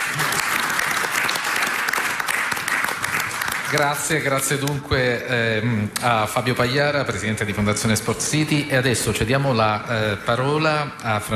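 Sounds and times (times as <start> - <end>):
audience applause: 0.0 - 4.3
speech: 3.7 - 11.3.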